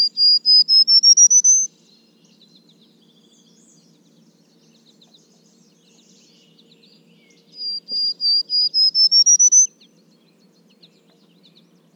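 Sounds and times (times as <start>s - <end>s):
Prairie Warbler Setophaga discolor: 0.0s - 11.9s.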